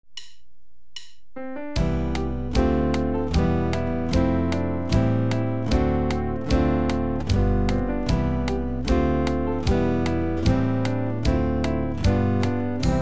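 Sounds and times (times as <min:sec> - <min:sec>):
guitar: 0:01.4 - 0:13.0.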